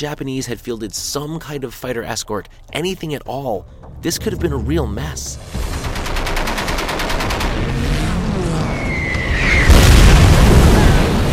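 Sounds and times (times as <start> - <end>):
speech: 0.0 - 5.8
low rumbling: 3.0 - 11.3
bomb blast in an air attack on the battleship Yamato: 4.3 - 11.3
whistling tone: 8.6 - 9.7.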